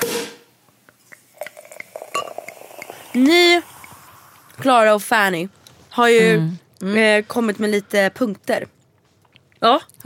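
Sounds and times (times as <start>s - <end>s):
person sipping from a glass: 1.2s - 4.6s
speech: 3.1s - 3.7s, 4.6s - 8.8s, 9.6s - 10.0s.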